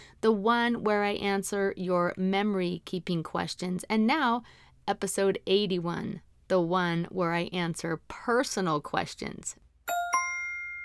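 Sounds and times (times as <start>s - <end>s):
speech: 0.2s - 9.6s
bright chime dinging for a correct answer: 9.9s - 10.8s.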